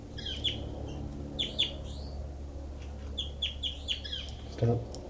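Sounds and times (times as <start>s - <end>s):
bird calls: 0.2s - 2.2s, 3.1s - 4.5s
speech: 4.6s - 5.0s.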